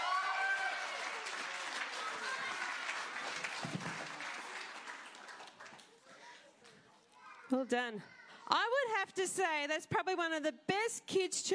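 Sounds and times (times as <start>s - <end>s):
audience whooping and cheering: 0.0s - 2.9s
audience clapping: 0.0s - 6.8s
speech: 7.5s - 11.5s.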